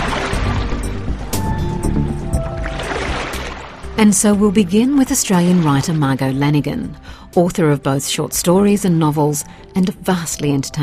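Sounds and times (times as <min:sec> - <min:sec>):
mysterious splashing from the beach: 0:00.0 - 0:07.0
speech: 0:04.0 - 0:10.8.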